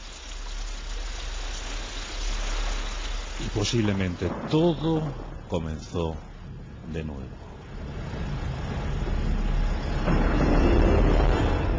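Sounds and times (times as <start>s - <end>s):
heavy rain lashing against window panes: 0.0s - 11.7s
speech: 3.4s - 7.5s
deafening thunder: 3.4s - 11.7s.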